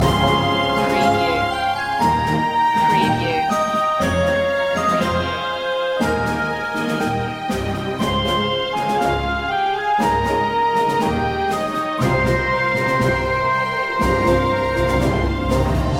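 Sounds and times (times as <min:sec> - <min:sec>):
music loop: 0:00.0 - 0:15.9.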